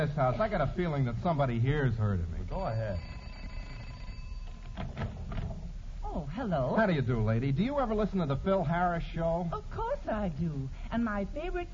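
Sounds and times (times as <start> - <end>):
speech: 0.0 - 3.2, 6.2 - 11.7
doorbell ringing: 2.5 - 4.8.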